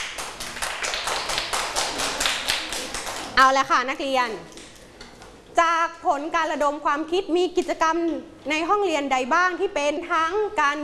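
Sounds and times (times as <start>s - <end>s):
classroom clapping: 0.0s - 3.7s
speech: 3.4s - 4.6s, 5.6s - 10.8s.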